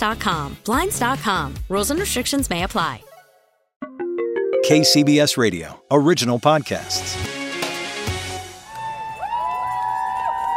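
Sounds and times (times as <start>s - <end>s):
speech: 0.0s - 3.1s, 4.7s - 7.3s
crowd cheering at outdoor rally: 8.7s - 10.5s.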